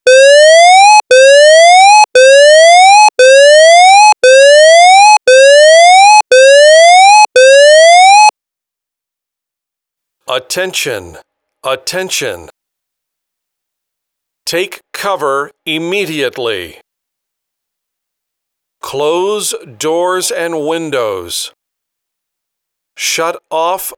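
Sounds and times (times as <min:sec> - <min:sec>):
siren: 0:00.1 - 0:08.3
voice message to take cover: 0:14.5 - 0:16.8, 0:18.8 - 0:21.6, 0:23.0 - 0:23.9.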